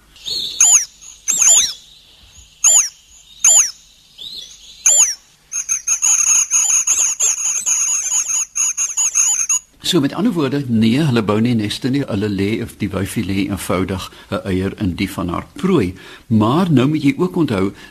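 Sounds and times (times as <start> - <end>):
waxbill calling, host bird of the cuckoo: 0.0 - 9.7
speech: 9.9 - 17.8.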